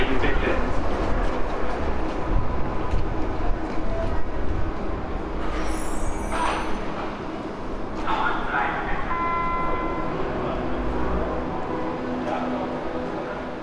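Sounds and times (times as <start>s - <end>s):
subway train rumbling on rails: 0.0s - 13.6s
brief high metallic squeal: 5.4s - 6.9s.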